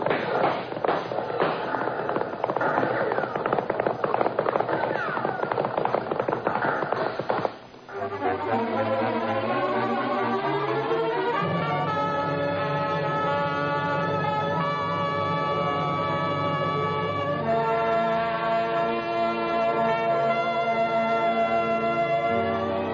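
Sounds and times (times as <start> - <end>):
cavalry horses galloping in a western chase: 0.0 - 22.9
music: 7.6 - 22.9.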